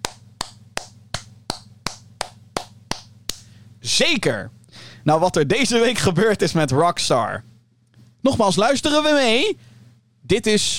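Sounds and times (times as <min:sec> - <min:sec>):
hand claps: 0:00.0 - 0:03.5
speech: 0:03.8 - 0:07.5, 0:08.2 - 0:10.7.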